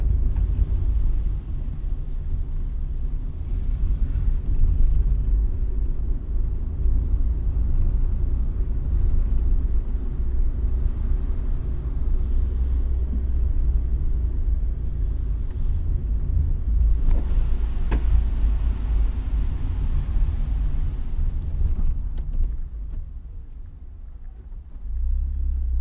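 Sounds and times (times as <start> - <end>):
car engine and road noise driving to a farm stand: 0.0 - 25.8.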